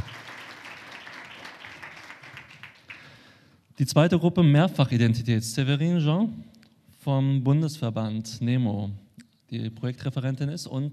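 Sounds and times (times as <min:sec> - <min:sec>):
audience applause: 0:00.0 - 0:03.4
speech: 0:03.8 - 0:10.9.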